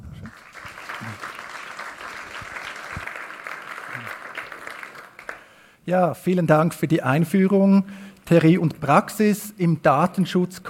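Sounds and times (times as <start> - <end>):
audience applause: 0.2 - 5.5
speech: 5.9 - 10.6.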